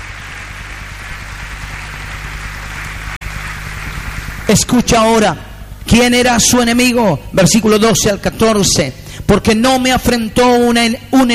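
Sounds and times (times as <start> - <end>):
audience applause: 0.0 - 4.7
speech: 4.5 - 11.3.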